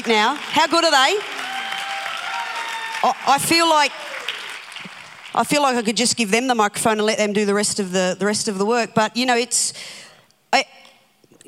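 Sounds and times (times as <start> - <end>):
speech: 0.0 - 1.4, 3.0 - 4.2, 5.3 - 10.8
audience applause for panel: 0.0 - 5.4
shouts and cheers: 1.2 - 4.6.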